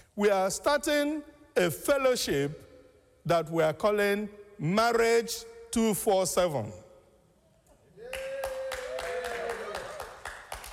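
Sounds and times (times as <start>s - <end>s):
speech: 0.2s - 6.8s
audience clapping: 8.1s - 10.7s.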